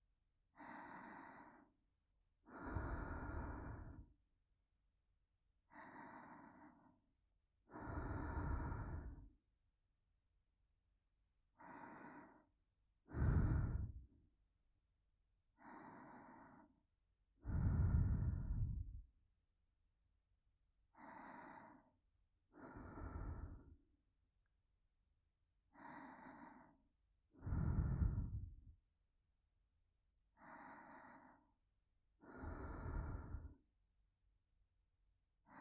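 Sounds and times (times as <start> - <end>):
breathing in the right ear: 0.6 - 1.8, 2.5 - 4.2, 5.7 - 7.1, 7.7 - 9.3, 11.6 - 14.1, 15.6 - 16.8, 17.4 - 19.1, 21.0 - 22.0, 22.6 - 23.8, 25.7 - 28.7, 30.3 - 31.6, 32.2 - 33.7.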